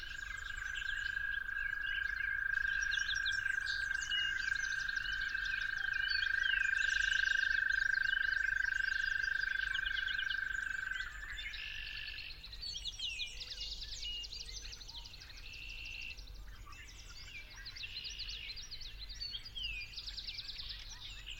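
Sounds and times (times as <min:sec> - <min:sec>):
toads trilling: 0:00.0 - 0:12.4
birdsong chorus: 0:00.0 - 0:21.3.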